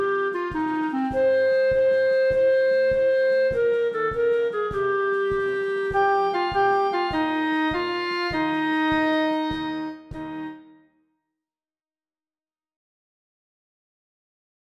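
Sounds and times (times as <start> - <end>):
clarinet: 0.0 - 11.0.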